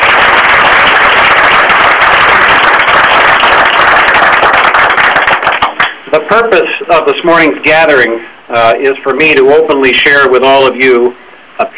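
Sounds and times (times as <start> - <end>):
audience applause: 0.0 - 6.0
speech: 6.3 - 11.7.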